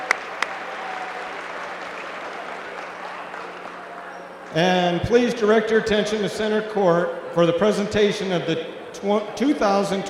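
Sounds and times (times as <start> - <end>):
crowd applause: 0.0 - 5.0
speech: 4.5 - 10.0.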